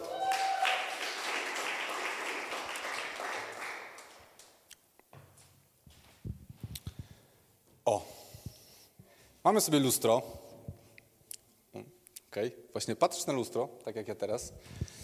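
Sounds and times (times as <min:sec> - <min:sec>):
audience applause: 0:00.0 - 0:04.5
speech: 0:07.9 - 0:08.1, 0:09.4 - 0:10.4, 0:12.4 - 0:14.9.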